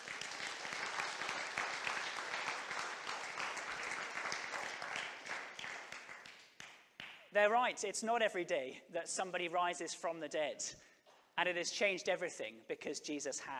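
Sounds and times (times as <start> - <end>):
audience applause: 0.0 - 6.4
speech: 7.4 - 13.5.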